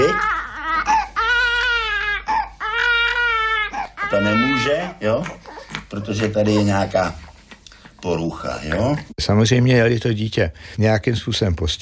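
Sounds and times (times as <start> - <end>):
baby girl crying, infant 10 to 20 weeks: 0.0 - 7.2
speech: 4.1 - 7.3, 8.0 - 11.8.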